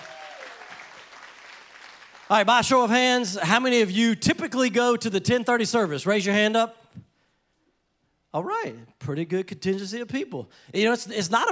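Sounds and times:
audience applause: 0:00.0 - 0:02.5
speech: 0:02.3 - 0:06.8, 0:08.4 - 0:11.4.

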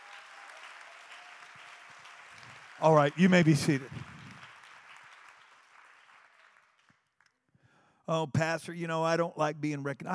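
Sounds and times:
audience applause: 0:00.0 - 0:06.9
speech: 0:02.8 - 0:04.0, 0:08.1 - 0:10.1.

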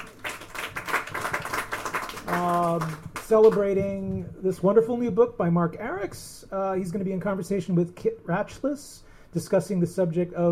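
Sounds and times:
audience applause: 0:00.0 - 0:03.6
speech: 0:02.3 - 0:10.5.

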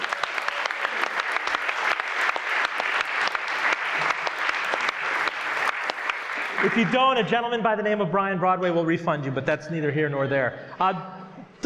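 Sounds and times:
audience round of applause: 0:00.0 - 0:07.6
speech: 0:06.6 - 0:11.2.

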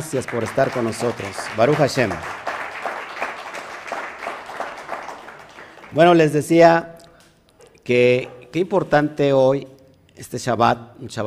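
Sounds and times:
speech: 0:00.0 - 0:02.4, 0:06.0 - 0:07.0, 0:07.9 - 0:11.2
audience applause: 0:00.0 - 0:06.3.

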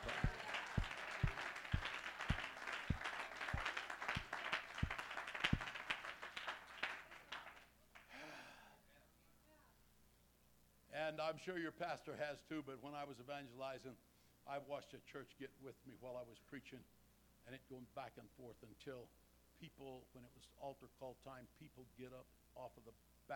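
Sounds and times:
audience clapping hands: 0:00.0 - 0:08.1
speech: 0:11.1 - 0:23.3.

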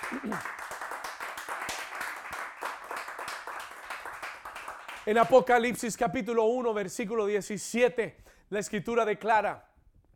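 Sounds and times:
loud crowd applause: 0:00.0 - 0:05.6
speech: 0:00.1 - 0:00.6, 0:05.0 - 0:09.7.

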